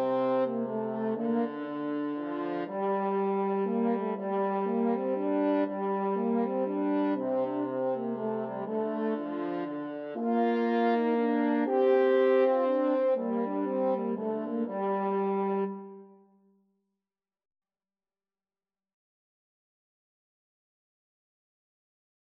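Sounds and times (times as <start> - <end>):
french horn duet: 0.0 - 16.1.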